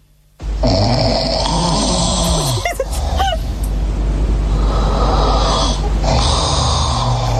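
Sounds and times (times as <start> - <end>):
man snoring loudly: 0.6 - 3.2, 4.5 - 7.3
laughter: 1.8 - 3.7.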